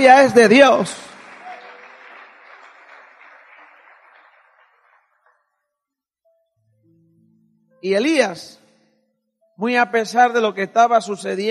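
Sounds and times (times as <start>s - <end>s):
speech: 0.0s - 1.1s, 7.8s - 8.6s, 9.6s - 11.4s
audience applause: 0.7s - 5.4s.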